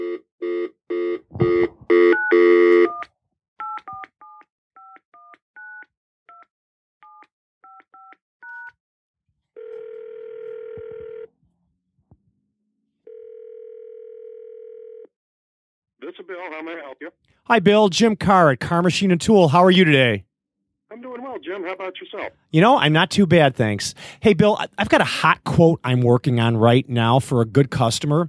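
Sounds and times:
telephone ringing: 0:00.0 - 0:03.0, 0:09.6 - 0:11.3, 0:13.1 - 0:15.1
speech: 0:17.5 - 0:20.3, 0:21.4 - 0:28.2.

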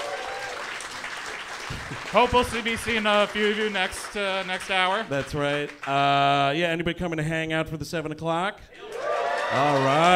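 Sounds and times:
live audience applause: 0:00.0 - 0:06.2, 0:08.8 - 0:10.1
speech: 0:01.7 - 0:08.9, 0:09.5 - 0:10.1.

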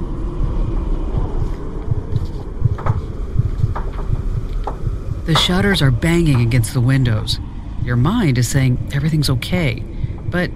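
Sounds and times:
howling wind whistling through trees: 0:00.0 - 0:10.5
speech: 0:05.3 - 0:10.5.

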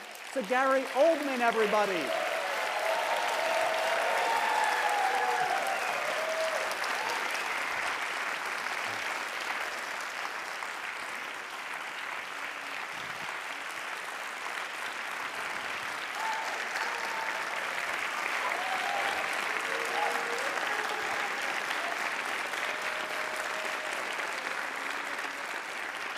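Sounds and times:
audience clapping welcoming a guest at a live interview event: 0:00.0 - 0:26.1
speech: 0:00.4 - 0:02.3
whoops and cheers: 0:02.0 - 0:07.9, 0:16.1 - 0:25.0.

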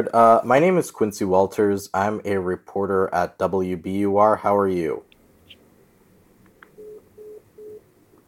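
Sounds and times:
speech: 0:00.0 - 0:05.1
phone line tone after caller hangs up: 0:06.8 - 0:07.8.

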